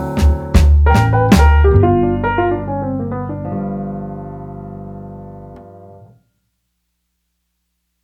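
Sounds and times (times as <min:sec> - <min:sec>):
blues music: 0:00.0 - 0:05.6.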